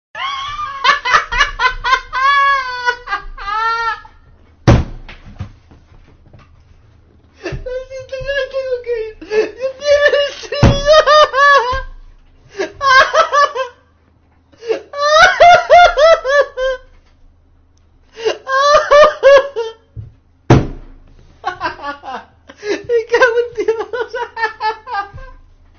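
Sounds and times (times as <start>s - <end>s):
person laughing: 0.2s - 4.2s, 7.4s - 13.8s, 14.6s - 16.9s, 18.2s - 19.9s, 21.4s - 25.4s.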